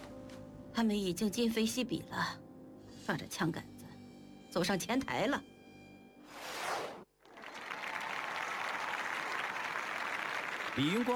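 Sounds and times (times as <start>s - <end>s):
speech: 0.8s - 2.4s, 3.1s - 3.7s, 4.5s - 5.5s, 10.8s - 11.1s
crowd applause: 7.3s - 11.1s.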